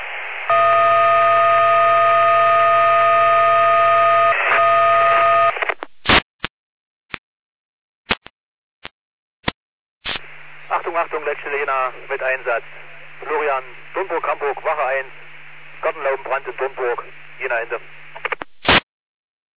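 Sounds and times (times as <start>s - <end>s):
fire brigade radio alerting beeps: 0.5s - 5.5s
radio clicks: 5.5s - 6.2s, 18.1s - 18.8s
speech: 11.4s - 15.2s, 15.9s - 17.9s.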